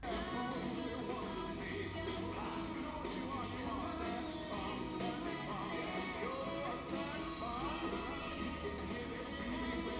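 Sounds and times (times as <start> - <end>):
music mix: 0.0 - 9.9.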